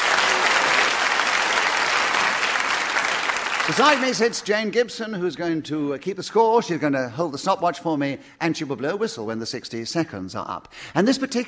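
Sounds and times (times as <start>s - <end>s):
audience applause: 0.0s - 4.4s
speech: 3.7s - 11.4s.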